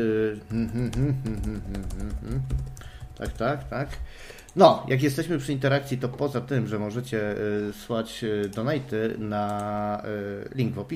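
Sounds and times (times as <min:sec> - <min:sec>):
speech: 0:00.0 - 0:10.9
typing on a keyboard: 0:00.5 - 0:04.6.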